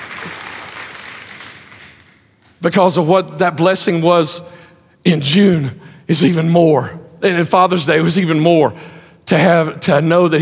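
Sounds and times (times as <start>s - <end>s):
people clapping: 0.0s - 2.6s
speech: 0.2s - 0.5s, 2.6s - 10.4s.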